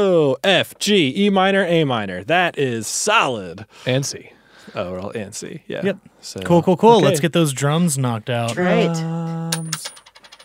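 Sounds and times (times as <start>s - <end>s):
speech: 0.0s - 10.0s
flipped coin landing: 9.5s - 10.4s.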